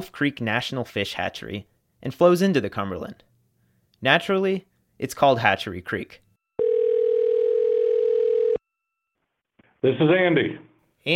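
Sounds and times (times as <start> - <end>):
speech: 0.0 - 3.3, 4.0 - 6.2, 9.8 - 11.1
telephone ringing on an outgoing call: 6.6 - 8.8.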